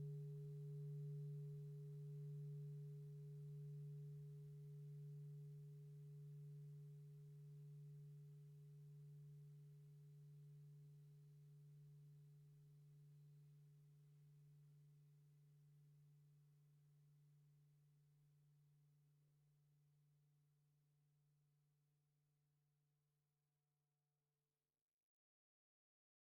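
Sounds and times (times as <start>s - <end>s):
soft singing bowl: 0.0s - 17.8s.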